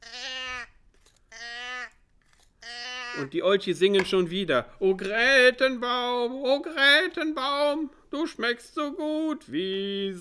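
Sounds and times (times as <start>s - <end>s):
baby bawling: 0.0s - 2.0s, 2.6s - 3.3s
speech: 3.2s - 10.1s.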